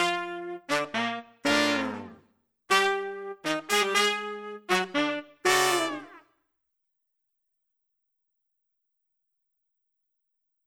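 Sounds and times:
nu jazz phrases: 0:00.0 - 0:06.1.

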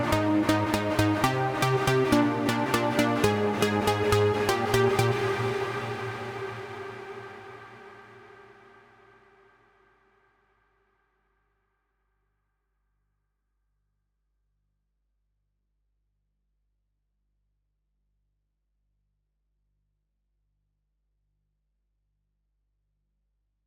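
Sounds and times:
breakdown stab: 0:00.0 - 0:08.2.

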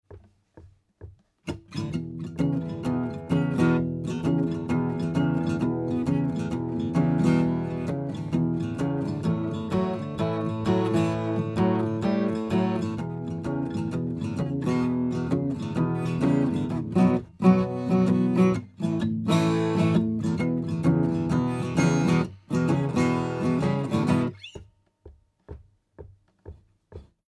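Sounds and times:
footstep impact noise: 0:00.0 - 0:01.6, 0:24.4 - 0:27.2
dry 12-string guitar: 0:01.0 - 0:24.7.

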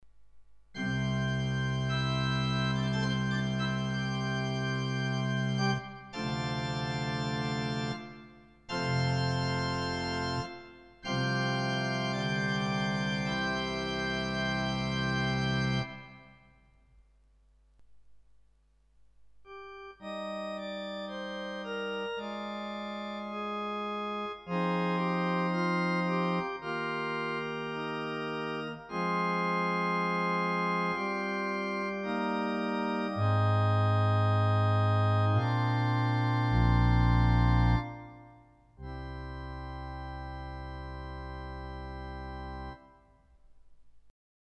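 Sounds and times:
organ: 0:00.7 - 0:16.6, 0:19.4 - 0:43.4.

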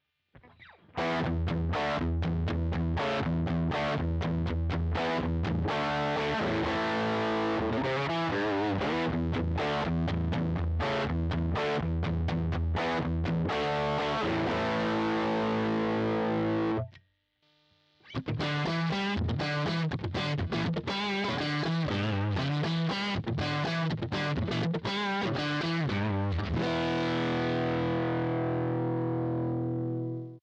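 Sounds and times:
EL34 tube amplifier live: 0:00.0 - 0:30.4.

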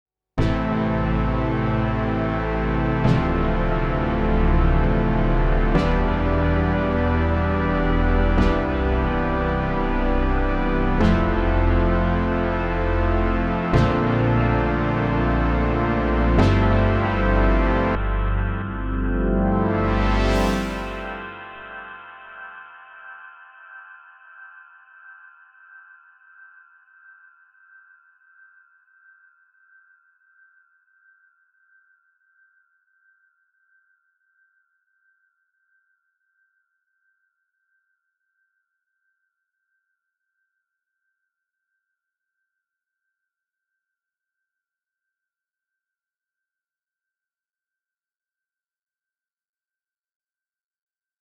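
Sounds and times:
stereo Moog synthesizer: 0:00.4 - 0:30.0.

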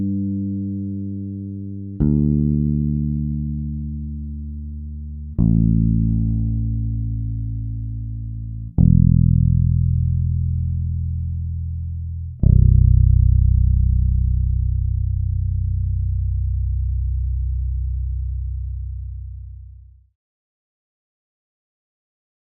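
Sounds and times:
bass guitar through a Phil Jones EQ: 0:00.0 - 0:20.1.

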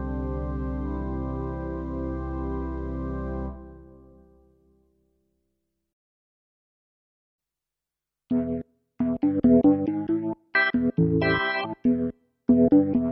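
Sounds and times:
organ: 0:00.0 - 0:04.2, 0:08.3 - 0:13.0.

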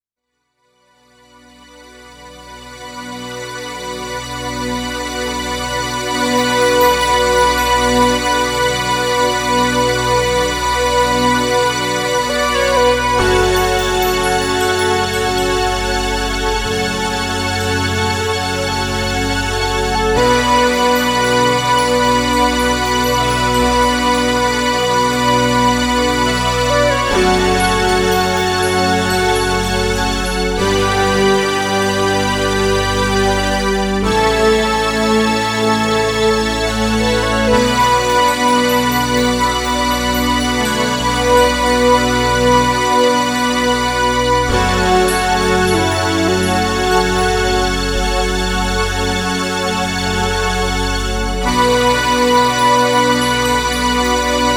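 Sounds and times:
strings through Strymon Big Sky hall reverb: 0:02.1 - 0:54.5.

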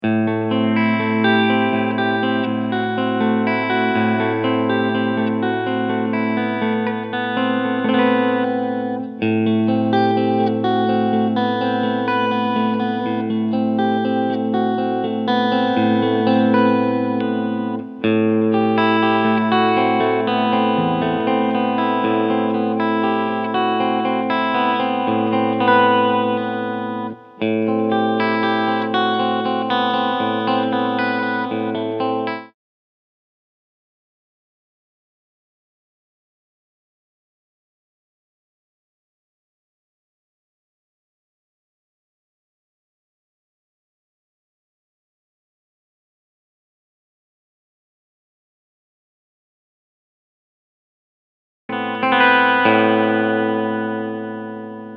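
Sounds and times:
S 500 electric guitar clean tone, all pickups, tone knob down: 0:00.0 - 0:32.6, 0:51.7 - 0:54.9.

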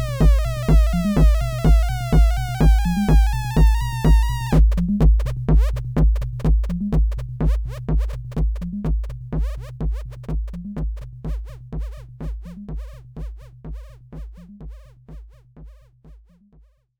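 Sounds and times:
mix bus without equalizer: 0:00.0 - 0:10.6.

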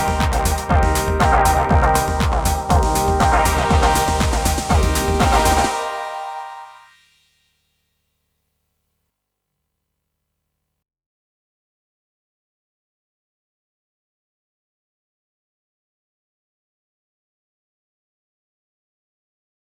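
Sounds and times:
bass: 0:00.0 - 0:05.8
TR drum machine beat: 0:00.0 - 0:06.6
chord stabs: 0:00.0 - 0:06.8.

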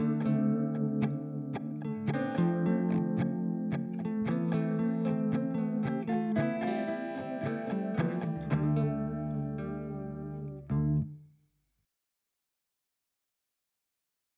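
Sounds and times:
guitar playing: 0:00.0 - 0:11.2.

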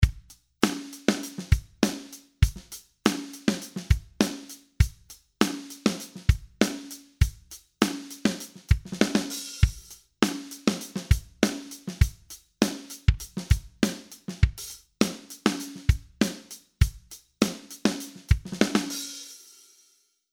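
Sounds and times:
drums mixed on Presonus SL3: 0:00.0 - 0:19.9.

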